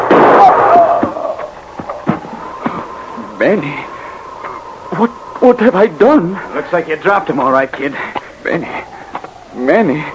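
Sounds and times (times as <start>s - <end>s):
rifle gunshot: 0.0s - 0.8s
speech: 3.4s - 3.9s, 4.9s - 8.9s, 9.6s - 10.1s.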